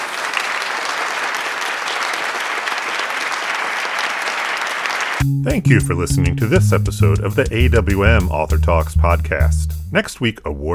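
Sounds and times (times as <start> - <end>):
audience applause after an author talk: 0.0 - 5.2
speech: 5.2 - 10.7.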